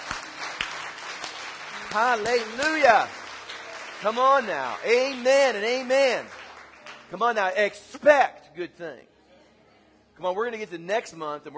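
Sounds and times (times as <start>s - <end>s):
crowd clapping: 0.0s - 7.6s
speech: 2.0s - 3.2s, 4.0s - 6.4s, 7.1s - 9.1s, 10.2s - 11.5s.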